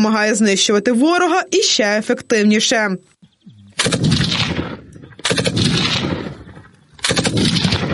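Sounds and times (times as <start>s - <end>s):
speech: 0.0s - 3.2s
machine gun firing bursts: 3.8s - 7.9s.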